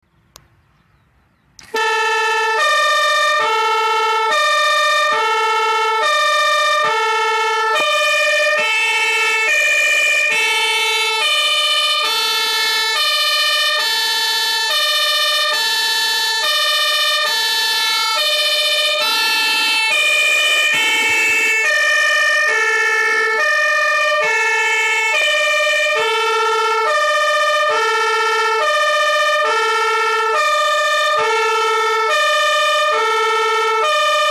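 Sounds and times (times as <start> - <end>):
Martin horn two-tone siren: 1.6 - 34.2.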